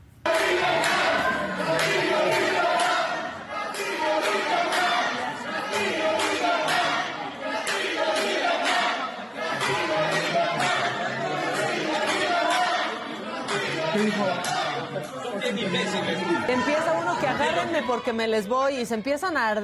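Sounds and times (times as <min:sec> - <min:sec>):
crowd shouting slogans in congress: 0:00.2 - 0:18.4
laughter: 0:09.4 - 0:18.3
speech: 0:15.5 - 0:19.6.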